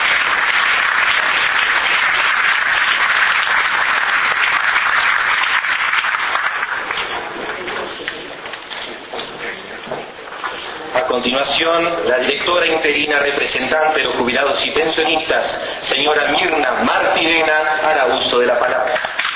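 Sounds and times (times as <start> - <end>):
audience applause: 0.0 - 9.9, 18.0 - 19.3
speech: 11.3 - 19.1.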